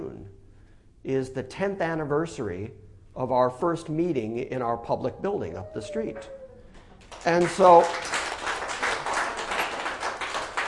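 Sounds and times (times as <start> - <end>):
speech: 1.0 - 6.4, 7.1 - 8.2
audience applause at a meeting: 7.0 - 10.6.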